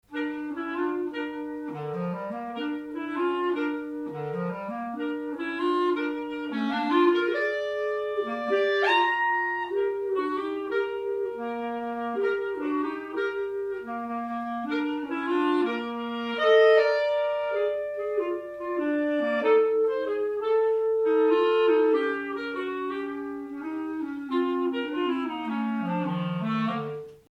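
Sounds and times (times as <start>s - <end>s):
blues music: 0.1s - 27.3s.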